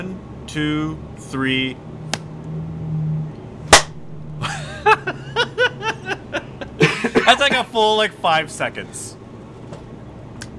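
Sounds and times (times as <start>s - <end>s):
speech: 0.0s - 2.0s, 7.3s - 9.2s
low steady hum: 0.0s - 10.5s
hand clap: 3.7s - 4.0s
rhythmic bursts of laughter: 4.4s - 7.5s.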